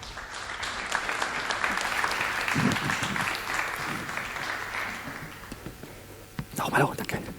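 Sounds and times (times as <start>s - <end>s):
audience applause: 0.0s - 5.8s
speech: 6.7s - 7.1s.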